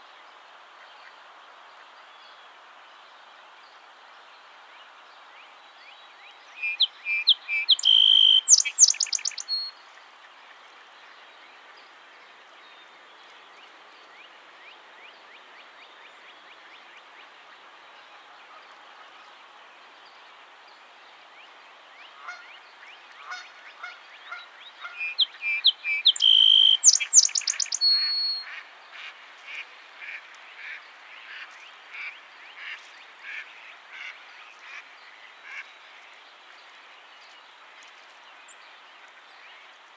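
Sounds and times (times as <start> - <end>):
Song sparrow song: 0.0 - 18.2, 19.2 - 39.9
hiss: 0.0 - 39.9
bird chatter: 6.6 - 9.7, 22.0 - 39.9.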